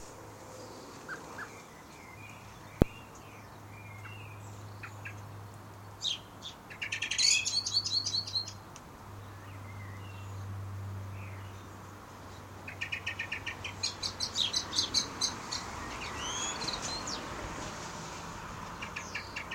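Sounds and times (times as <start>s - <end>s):
birds singing in a back garden in Maidenhead: 0.0s - 17.4s, 18.7s - 19.5s.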